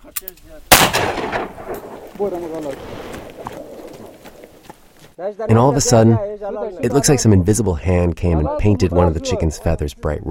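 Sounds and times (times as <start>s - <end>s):
speech: 0.2s - 3.3s, 5.2s - 10.2s
single gunshot: 0.7s - 2.6s.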